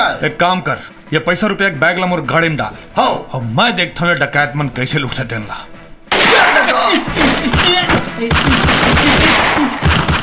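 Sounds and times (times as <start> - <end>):
speech: 0.2 - 5.7, 6.7 - 9.8
loud sustained gunfire: 7.4 - 10.2.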